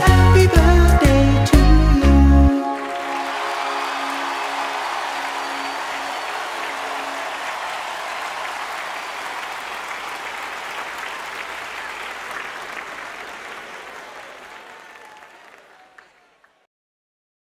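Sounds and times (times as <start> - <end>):
birthday song: 0.0 - 7.6.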